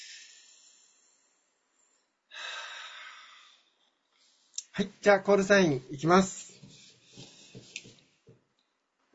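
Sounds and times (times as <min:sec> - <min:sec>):
deep breathing: 0:00.0 - 0:04.6
speech: 0:04.8 - 0:06.4.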